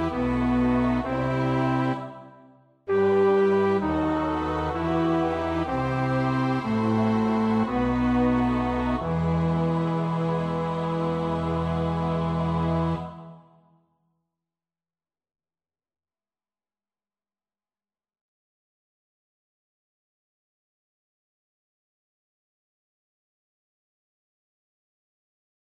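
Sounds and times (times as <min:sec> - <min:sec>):
bass choir part practice: 0:00.0 - 0:13.4.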